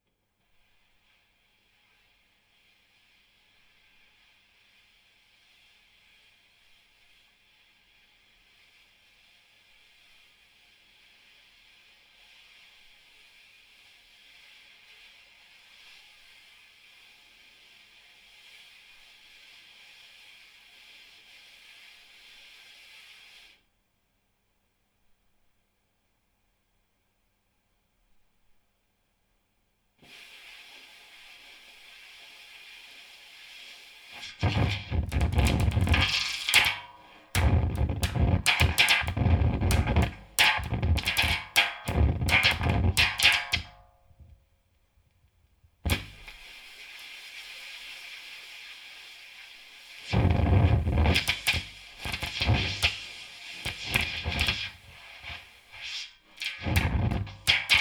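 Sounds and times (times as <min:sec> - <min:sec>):
snare drum: 0:34.2 - 0:43.9, 0:45.9 - 0:46.5, 0:50.0 - 0:57.8.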